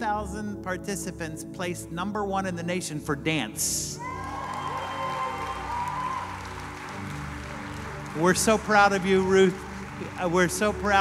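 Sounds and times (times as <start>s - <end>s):
speech: 0.0s - 4.3s, 8.2s - 10.9s
audience clapping: 4.0s - 10.9s.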